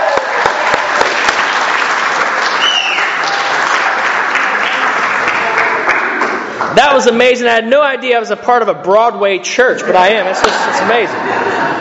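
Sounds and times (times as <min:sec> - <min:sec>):
church audience applauding: 0:00.0 - 0:06.8
whistles and cheers: 0:02.4 - 0:03.6
speech: 0:06.8 - 0:11.8
laughter: 0:09.7 - 0:11.8.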